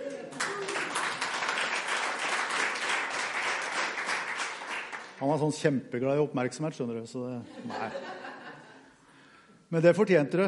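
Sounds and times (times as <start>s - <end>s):
audience applause: 0.0s - 5.2s
speech: 5.2s - 8.2s, 9.7s - 10.4s
laughter: 7.4s - 8.9s.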